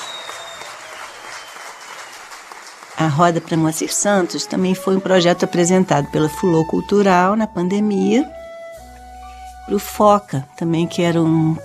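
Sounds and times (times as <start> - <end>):
audience applause welcoming a percussionist and singer to a music circle event: 0.0 - 4.3
speech: 3.0 - 8.4, 9.7 - 11.6.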